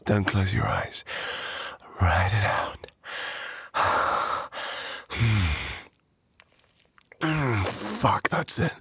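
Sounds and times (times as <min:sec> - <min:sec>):
speech: 0:00.1 - 0:03.9, 0:08.0 - 0:08.7
woman breathing heavily catching her breath after exertion: 0:01.1 - 0:01.8, 0:03.1 - 0:05.9.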